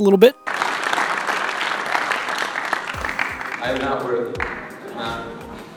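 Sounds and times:
speech: 0.0 - 0.6, 3.6 - 5.4
audience applause: 0.4 - 4.7.

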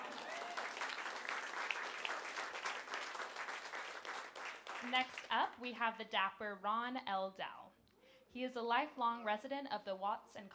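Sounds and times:
audience applause: 0.0 - 5.2
speech: 4.8 - 7.7, 8.4 - 10.5.

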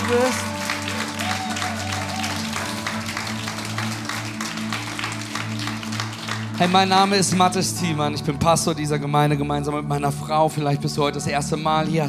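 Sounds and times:
audience applause: 0.0 - 7.8
speech: 0.1 - 0.5, 6.6 - 12.0.

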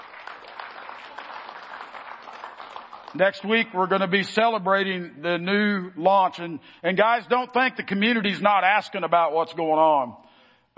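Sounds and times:
audience clapping: 0.0 - 4.0
speech: 3.1 - 10.2.

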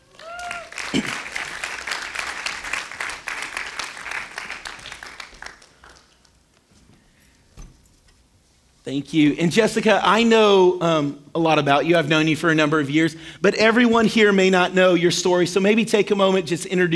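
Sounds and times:
audience applause welcoming a guest speaker to the stage: 0.0 - 6.3
speech: 8.9 - 16.9.

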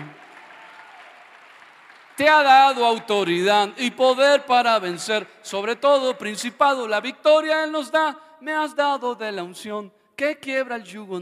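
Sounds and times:
audience applause: 0.0 - 2.8
speech: 2.2 - 11.2.

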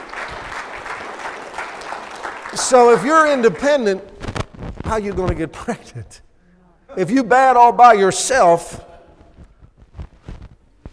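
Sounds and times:
audience applause: 0.0 - 4.0
speech: 2.5 - 4.2, 4.9 - 6.2, 6.9 - 8.9.

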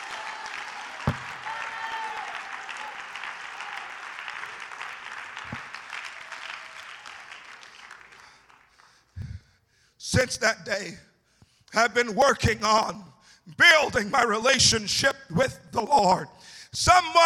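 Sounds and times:
cheers and voices: 0.0 - 4.0
crowd clapping: 0.0 - 9.1
sharp thumps: 1.1 - 1.4
speech: 10.2 - 11.1, 11.8 - 17.2.

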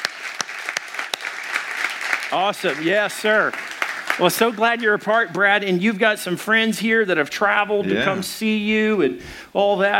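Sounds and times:
audience applause: 0.0 - 5.2
speech: 2.3 - 9.9.

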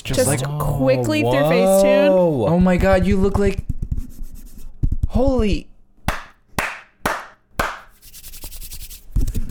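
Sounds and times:
speech: 0.1 - 3.7, 5.2 - 5.7
sharp crisp hand claps: 6.1 - 9.0
rough rustling noise with low rumbling undertone: 7.9 - 9.2.

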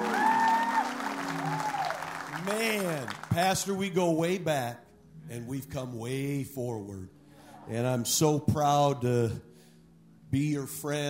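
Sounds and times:
audience applauding: 0.0 - 3.7
speech: 2.5 - 9.5, 10.3 - 11.0.

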